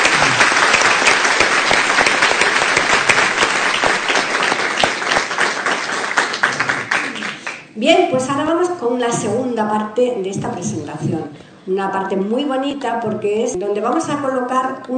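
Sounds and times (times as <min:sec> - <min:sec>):
audience applauding loudly: 0:00.0 - 0:07.7
speech: 0:07.8 - 0:14.9.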